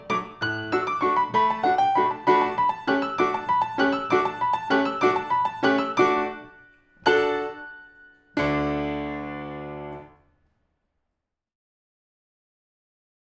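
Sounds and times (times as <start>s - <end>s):
ballet music: 0.0s - 10.1s.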